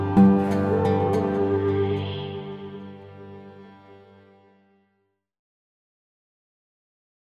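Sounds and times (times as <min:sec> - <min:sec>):
tambur playing a song: 0:00.1 - 0:03.4.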